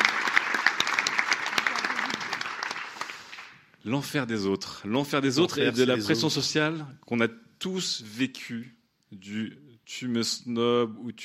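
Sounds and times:
audience applause: 0.0s - 3.6s
speech: 3.8s - 11.2s.

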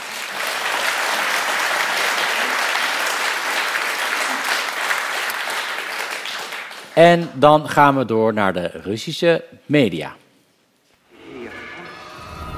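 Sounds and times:
audience applause: 0.0s - 7.0s
speech: 7.0s - 10.2s.

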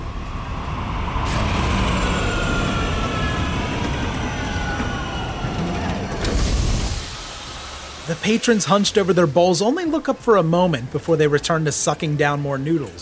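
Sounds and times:
deafening whir of a landing PD spinner police flying car: 0.0s - 8.1s
speech: 8.1s - 13.0s.

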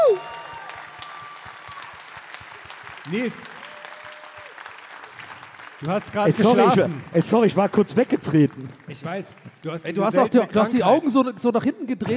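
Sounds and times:
live audience applause: 0.0s - 11.0s
speech: 3.1s - 3.6s, 5.8s - 12.1s.

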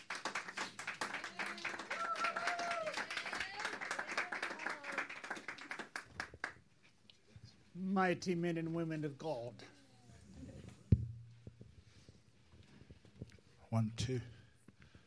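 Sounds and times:
audience applause: 0.0s - 6.6s
voices calling out and cheering: 1.0s - 5.4s
speech: 8.0s - 9.7s, 13.8s - 14.4s.

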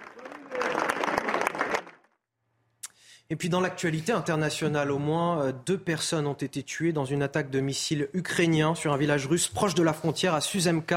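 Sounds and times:
crowd of residents applauding: 0.0s - 2.2s
speech: 3.3s - 10.9s.

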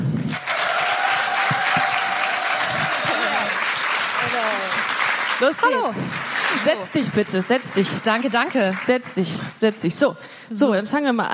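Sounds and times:
live audience cheering and applause: 0.2s - 9.2s
speech: 5.4s - 11.3s.

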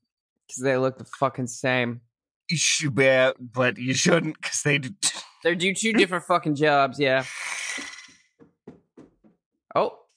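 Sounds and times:
speech: 0.5s - 7.5s, 9.8s - 10.0s
knock at the door: 8.4s - 9.4s.

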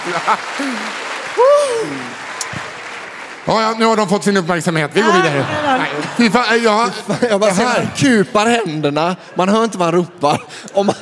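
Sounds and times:
laughter: 0.0s - 2.2s, 5.0s - 10.9s
speech: 0.0s - 2.6s, 3.4s - 10.9s
crowd cheering: 0.0s - 8.4s.

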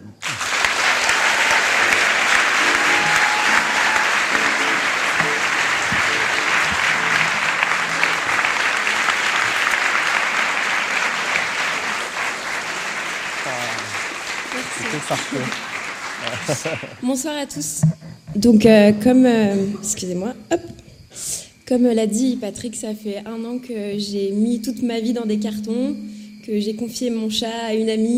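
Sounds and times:
audience applause: 0.0s - 17.0s
laughter: 0.2s - 17.0s
speech: 15.3s - 15.6s, 16.4s - 20.7s, 21.7s - 28.1s.

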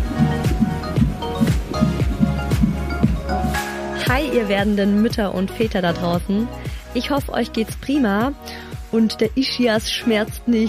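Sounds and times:
fetal heartbeat on an ultrasound monitor: 0.0s - 3.3s
speech: 4.2s - 10.6s.

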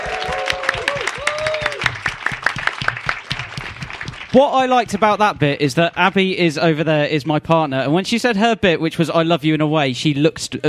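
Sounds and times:
high voices whooping and cheering: 0.0s - 2.2s
audience applause: 0.0s - 5.2s
speech: 4.4s - 10.6s.

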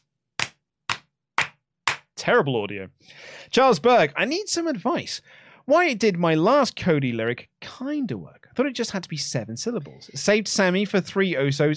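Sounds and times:
hand claps: 0.0s - 2.2s
speech: 2.2s - 11.7s.

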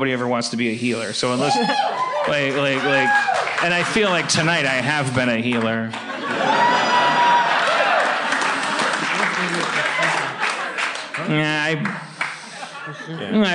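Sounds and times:
speech: 0.0s - 6.1s, 11.2s - 12.1s, 12.9s - 13.5s
laughter: 1.3s - 2.1s, 4.0s - 13.5s
whoops from the crowd: 1.5s - 2.3s, 2.9s - 3.4s, 6.4s - 8.1s
forced audience applause: 1.5s - 12.9s.

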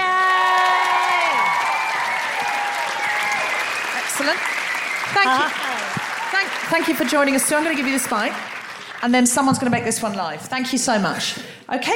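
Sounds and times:
audience cheering: 0.0s - 8.6s
audience applause: 0.0s - 10.0s
speech: 4.2s - 11.9s.

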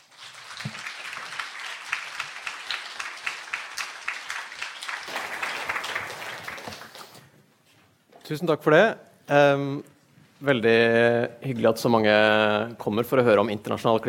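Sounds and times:
warm audience applause: 0.0s - 7.3s
speech: 8.3s - 14.0s.

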